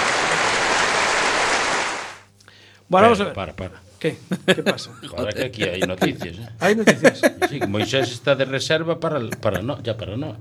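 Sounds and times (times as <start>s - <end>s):
audience applause: 0.0s - 2.3s
speech: 2.9s - 10.4s
laughter: 4.3s - 8.4s, 9.1s - 9.8s.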